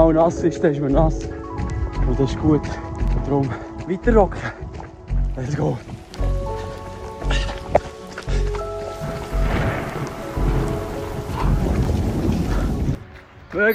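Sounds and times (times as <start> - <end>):
speech: 0.0 - 1.4, 2.0 - 4.6, 5.4 - 6.0, 13.6 - 13.7
heavy rain in a cold night thunderstorm: 5.4 - 13.0
thunder rumbling in a cold night thunderstorm: 7.3 - 13.0.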